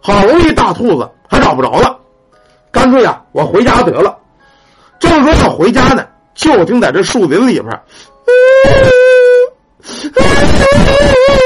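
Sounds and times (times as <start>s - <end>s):
speech: 0.6s - 2.0s, 2.8s - 4.2s, 5.0s - 9.2s
voice imitating a woman wailing and sobbing: 8.3s - 11.4s.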